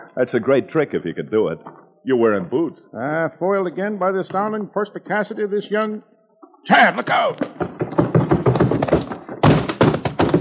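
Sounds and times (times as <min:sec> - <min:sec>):
speech: 0:00.1 - 0:07.8
person thrown through swinging saloon doors by a bouncer: 0:07.4 - 0:10.3.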